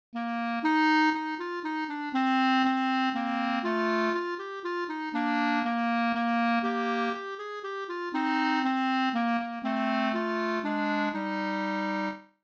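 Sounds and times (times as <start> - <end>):
clarinet duet playback: 0.2 - 12.4.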